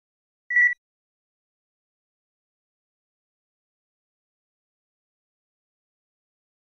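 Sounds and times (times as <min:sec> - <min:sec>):
HF stagger flash beep: 0:00.5 - 0:00.8.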